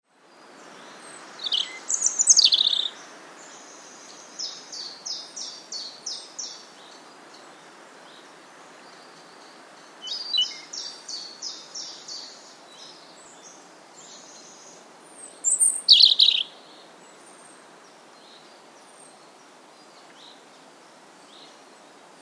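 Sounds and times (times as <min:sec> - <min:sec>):
European robin song: 0:00.6 - 0:17.6.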